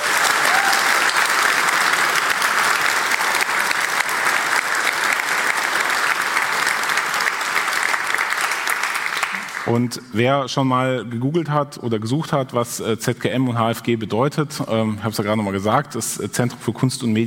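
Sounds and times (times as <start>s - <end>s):
audience applause: 0.0s - 9.8s
speech: 9.7s - 17.2s.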